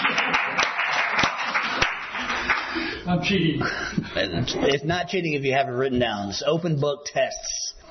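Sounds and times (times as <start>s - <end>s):
audience clapping: 0.0s - 3.0s
speech: 3.1s - 7.8s.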